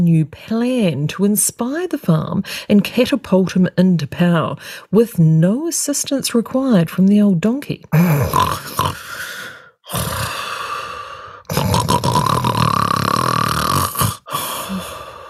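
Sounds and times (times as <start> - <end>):
speech: 0.0 - 9.3, 9.9 - 10.4
pig snoring and snorting: 8.1 - 9.2, 9.9 - 10.4, 11.5 - 14.4.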